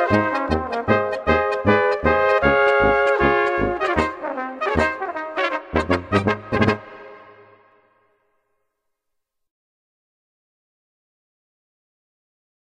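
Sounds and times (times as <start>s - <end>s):
early morning polka: 0.0s - 7.6s.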